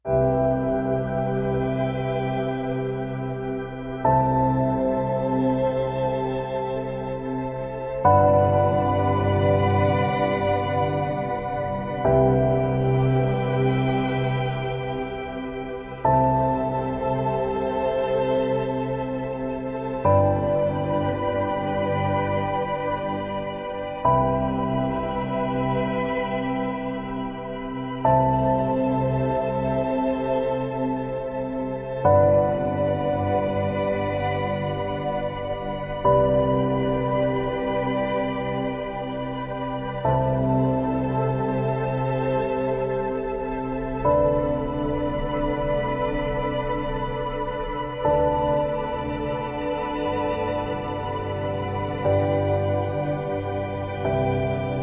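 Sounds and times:
ambient music: 0.0s - 54.8s.

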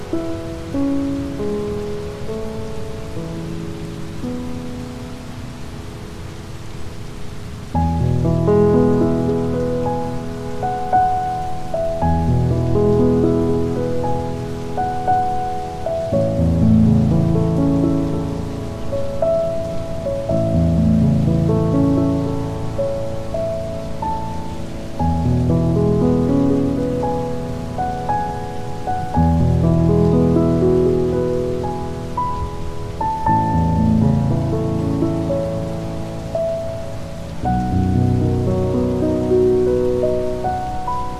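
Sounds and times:
piano: 0.0s - 41.1s
rain: 0.0s - 41.1s.

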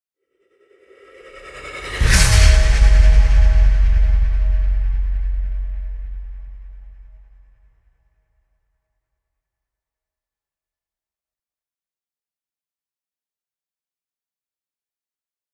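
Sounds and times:
impacts: 1.8s - 7.3s.

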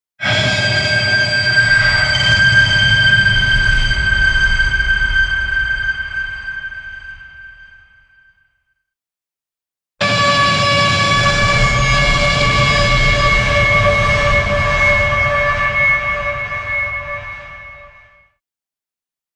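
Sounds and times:
screaming wires: 0.2s - 8.1s, 10.0s - 17.9s.

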